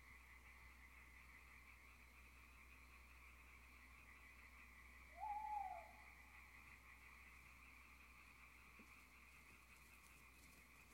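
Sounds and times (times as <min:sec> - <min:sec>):
background hiss: 0:00.0 - 0:10.9
owl whistled call: 0:05.1 - 0:06.1.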